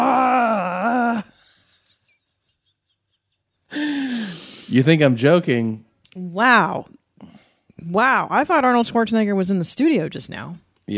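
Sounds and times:
man imitating a scream: 0:00.0 - 0:01.3
speech: 0:04.7 - 0:10.9.

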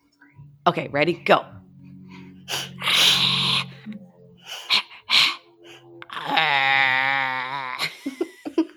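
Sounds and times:
speech: 0:00.7 - 0:01.6
two people imitating bison noises with their voices: 0:02.0 - 0:07.9
laughter: 0:07.7 - 0:08.7.

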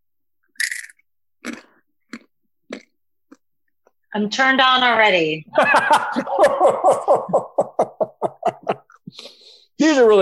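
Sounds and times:
chewing large crunchy corn nuts: 0:00.6 - 0:03.5
speech: 0:04.2 - 0:07.7, 0:09.1 - 0:10.2
laughter: 0:05.5 - 0:09.0.

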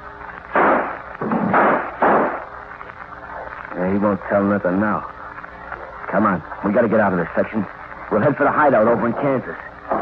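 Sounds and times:
gunshots: 0:00.5 - 0:02.5
speech: 0:03.9 - 0:05.2, 0:06.1 - 0:09.6.

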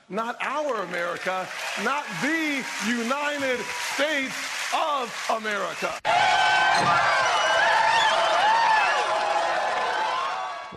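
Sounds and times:
speech: 0:00.1 - 0:07.4
rowdy crowd cheering: 0:00.2 - 0:10.7.

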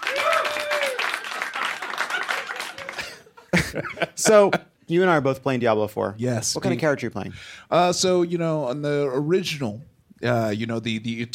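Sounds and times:
voices whooping: 0:00.0 - 0:01.4
audience clapping: 0:00.0 - 0:03.5
laughter: 0:01.6 - 0:04.7
speech: 0:03.7 - 0:11.3.

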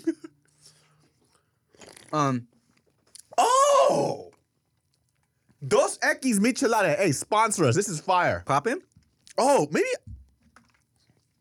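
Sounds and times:
crunchy snack being bitten and chewed: 0:00.4 - 0:05.6, 0:10.4 - 0:11.3
speech: 0:02.1 - 0:02.5, 0:03.9 - 0:04.3, 0:05.6 - 0:10.1.

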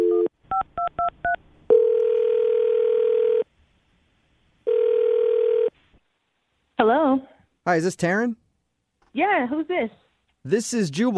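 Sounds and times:
telephone ringback tones: 0:01.7 - 0:03.4, 0:04.7 - 0:05.7
speech: 0:06.8 - 0:08.4, 0:09.2 - 0:11.1.

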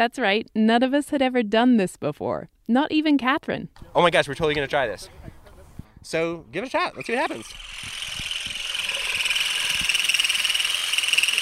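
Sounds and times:
speech: 0:00.0 - 0:05.2, 0:06.0 - 0:08.0
vibrating olive harvesting rake in branches: 0:06.9 - 0:11.4.

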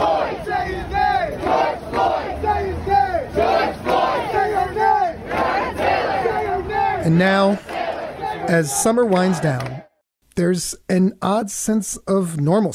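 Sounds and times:
New York street protesters chanting in unison: 0:00.0 - 0:09.9
protest crowd roar: 0:00.0 - 0:09.9
speech: 0:07.0 - 0:07.8, 0:08.5 - 0:09.8, 0:10.4 - 0:12.7.

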